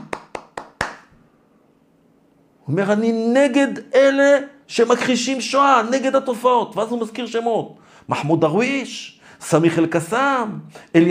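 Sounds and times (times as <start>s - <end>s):
hand claps: 0.0s - 1.2s
speech: 2.7s - 11.1s.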